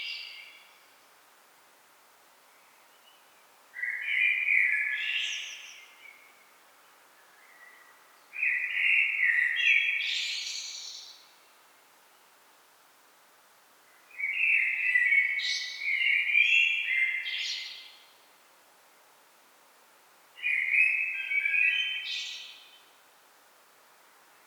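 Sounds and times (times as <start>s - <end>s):
Common blackbird song: 0.0s - 0.9s, 2.5s - 12.3s, 13.9s - 18.2s, 20.4s - 23.0s.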